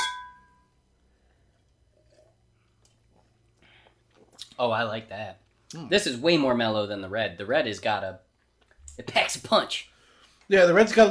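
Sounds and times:
wine glasses clinking in a toast: 0:00.0 - 0:00.7
speech: 0:04.6 - 0:08.3, 0:09.0 - 0:09.9, 0:10.5 - 0:11.1.

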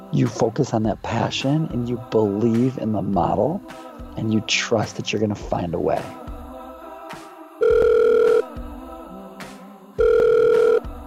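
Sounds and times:
quiet music: 0:00.0 - 0:11.0
speech: 0:00.1 - 0:06.3
telephone ringing: 0:07.6 - 0:08.5, 0:10.0 - 0:10.9.

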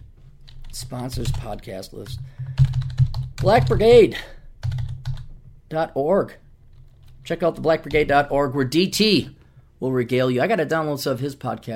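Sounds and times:
typing on a computer keyboard: 0:00.5 - 0:03.9, 0:04.6 - 0:05.3
speech: 0:00.7 - 0:02.4, 0:03.4 - 0:04.4, 0:05.7 - 0:06.4, 0:07.3 - 0:11.7.

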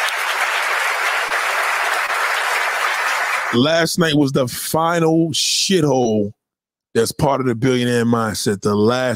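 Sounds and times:
round of applause: 0:00.0 - 0:03.7
speech: 0:03.5 - 0:09.1.

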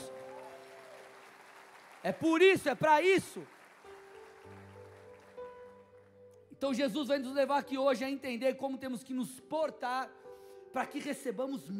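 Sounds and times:
crowd applause: 0:00.0 - 0:05.9
speech: 0:02.0 - 0:03.6, 0:06.6 - 0:11.7.

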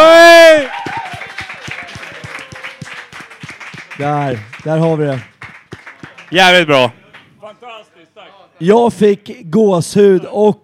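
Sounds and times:
audience applause: 0:00.6 - 0:07.2
speech: 0:04.0 - 0:05.3, 0:06.3 - 0:10.6.

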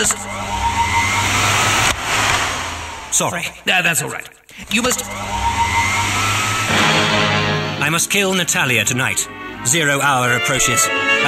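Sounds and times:
speech: 0:00.0 - 0:00.5, 0:03.2 - 0:05.6, 0:06.7 - 0:11.2
warm air hand dryer blowing: 0:00.0 - 0:03.2, 0:04.6 - 0:08.1.

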